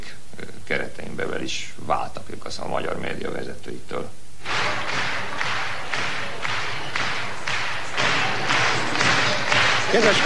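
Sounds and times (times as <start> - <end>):
speech: 0.7 - 4.2, 9.9 - 10.2
audience applauding rhythmically: 4.4 - 10.2.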